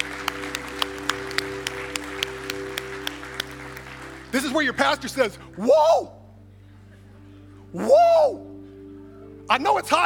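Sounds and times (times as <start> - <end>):
audience applause: 0.0 - 5.1
speech: 4.4 - 6.2, 7.7 - 8.4, 9.5 - 10.0.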